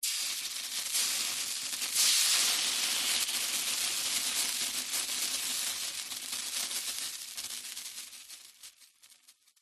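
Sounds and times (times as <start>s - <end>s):
water hitting hot metal sizzling and bubbling: 0.0s - 9.5s.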